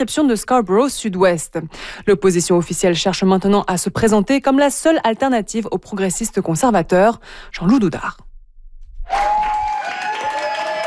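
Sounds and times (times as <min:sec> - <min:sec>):
speech: 0:00.0 - 0:08.3
colleagues applauding a newly elected member: 0:09.1 - 0:10.8.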